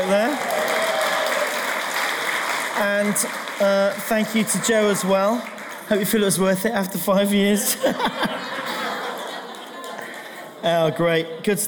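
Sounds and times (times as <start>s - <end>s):
crowd applauding: 0.0s - 6.6s, 8.3s - 10.7s
speech: 2.8s - 8.6s, 10.6s - 11.6s
laughter: 7.6s - 10.6s.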